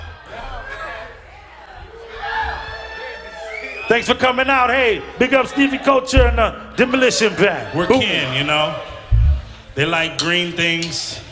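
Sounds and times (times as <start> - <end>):
crowd yelling and whooping: 0.0 - 9.7
speech: 3.9 - 8.9, 9.8 - 11.3
low rumbling thump: 6.2 - 6.8, 9.1 - 9.7.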